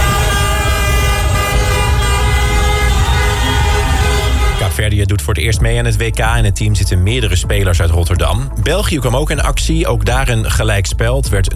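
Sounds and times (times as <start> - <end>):
many car horns honking in celebration: 0.0 - 4.8
traffic rumbling: 0.0 - 4.9
speech: 4.8 - 11.5.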